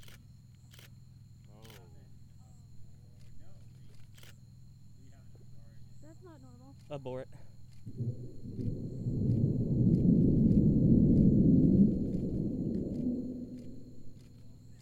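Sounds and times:
speech: 0:06.2 - 0:08.8
Delta IV rocket engine roar in a brief engine fire: 0:07.8 - 0:14.8.

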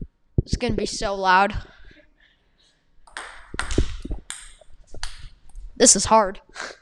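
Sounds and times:
speech: 0:00.5 - 0:01.7, 0:05.8 - 0:06.8
ping-pong ball taps: 0:03.1 - 0:05.2.

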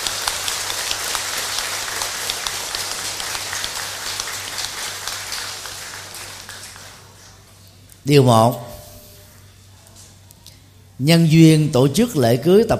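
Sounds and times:
big round of applause: 0:00.0 - 0:07.6
speech: 0:08.0 - 0:08.7, 0:11.0 - 0:12.7.

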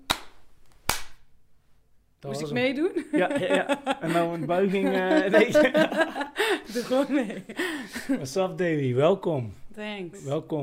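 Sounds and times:
single loud hand clap: 0:00.0 - 0:01.2
speech: 0:02.2 - 0:10.6
laughter: 0:02.8 - 0:08.5.

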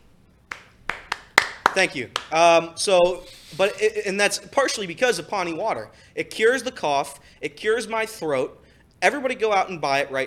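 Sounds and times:
hand claps: 0:00.5 - 0:02.5
speech: 0:01.8 - 0:10.2.

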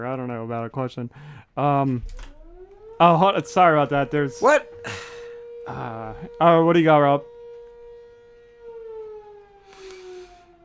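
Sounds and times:
speech: 0:00.0 - 0:02.3, 0:03.0 - 0:05.1, 0:05.7 - 0:07.3
fire alarm siren outside: 0:01.2 - 0:10.6.

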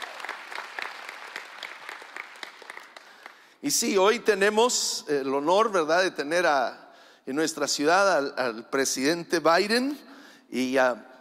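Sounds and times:
audience applause: 0:00.0 - 0:03.5
speech: 0:03.6 - 0:11.1.

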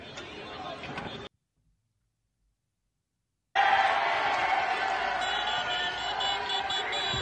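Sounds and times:
Irish street protest crowd: 0:00.0 - 0:01.3, 0:03.6 - 0:07.2.

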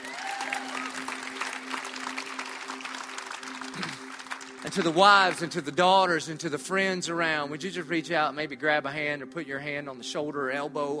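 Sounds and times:
high voices whooping: 0:00.0 - 0:01.2
crowd of women applauding: 0:00.0 - 0:05.7
speech: 0:04.7 - 0:10.9.

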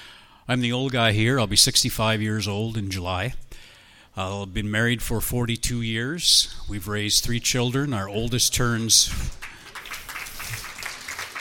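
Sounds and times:
speech: 0:00.5 - 0:09.5
audience clapping: 0:09.3 - 0:11.3.

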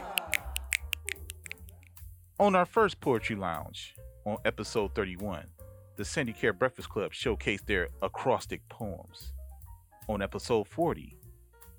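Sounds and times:
audience applause: 0:00.0 - 0:00.8
finger snapping: 0:00.0 - 0:01.8
speech: 0:02.4 - 0:09.4, 0:10.1 - 0:11.2.

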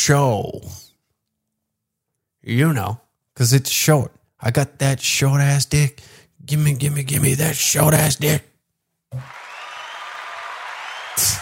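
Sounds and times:
speech: 0:00.0 - 0:00.8, 0:02.4 - 0:08.5, 0:09.1 - 0:09.4, 0:11.2 - 0:11.4
studio audience applause: 0:09.1 - 0:11.4.

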